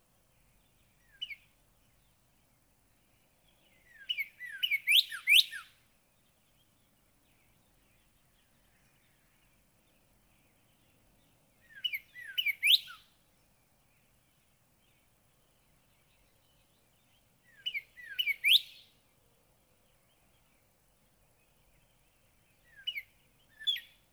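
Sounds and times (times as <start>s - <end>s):
Northern cardinal song of bright slurred whistled notes: 1.0s - 1.4s, 3.8s - 5.8s, 11.6s - 13.1s, 17.5s - 18.9s, 22.6s - 24.0s.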